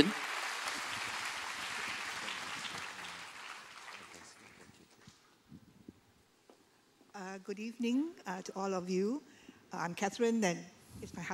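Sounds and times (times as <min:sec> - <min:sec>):
crowd applauding: 0:00.0 - 0:04.8
speech: 0:07.4 - 0:11.3.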